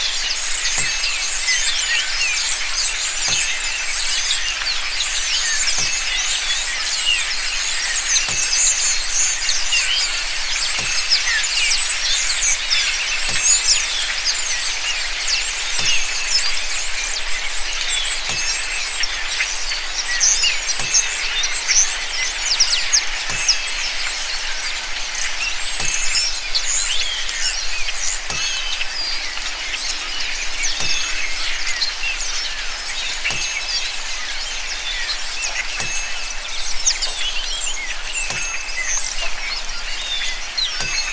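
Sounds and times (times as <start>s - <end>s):
rainforest ambience: 0.0s - 41.1s.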